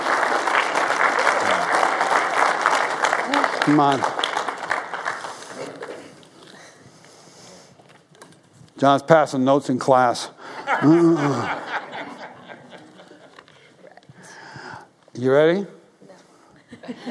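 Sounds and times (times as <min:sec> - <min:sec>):
crowd applauding: 0:00.0 - 0:06.3
speech: 0:03.7 - 0:04.1, 0:08.8 - 0:11.6, 0:15.2 - 0:15.8
laughter: 0:10.4 - 0:13.7, 0:16.6 - 0:17.0.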